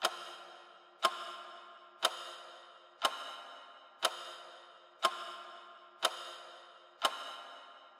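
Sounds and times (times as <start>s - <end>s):
clock second hand ticking with reverb: 0.0s - 2.4s, 3.0s - 4.4s, 5.0s - 6.4s, 7.0s - 7.9s.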